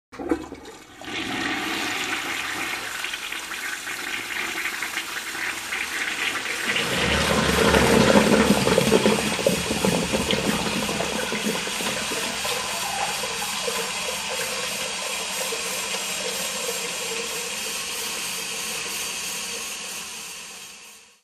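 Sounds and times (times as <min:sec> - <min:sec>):
toilet: 0:00.1 - 0:21.2.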